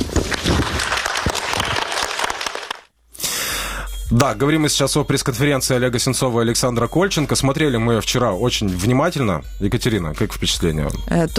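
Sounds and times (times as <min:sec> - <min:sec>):
audience applause: 0:00.0 - 0:02.9
speech: 0:04.1 - 0:11.3.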